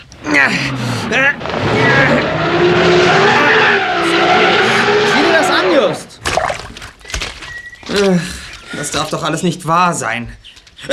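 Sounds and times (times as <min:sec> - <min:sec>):
car engine revving: 0:00.2 - 0:06.2
speech: 0:00.4 - 0:02.9, 0:09.0 - 0:10.9.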